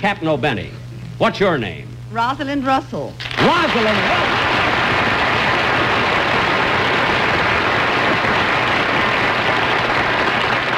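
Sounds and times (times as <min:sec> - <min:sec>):
speech: 0:00.0 - 0:05.0
waiters applauding: 0:03.2 - 0:10.7.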